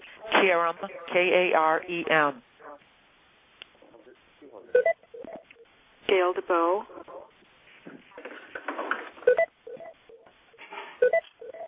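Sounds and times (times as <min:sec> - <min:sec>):
speech: 0:00.4 - 0:02.5, 0:06.1 - 0:07.0
telephone beeping: 0:04.8 - 0:05.6, 0:09.2 - 0:10.3, 0:11.0 - 0:11.6.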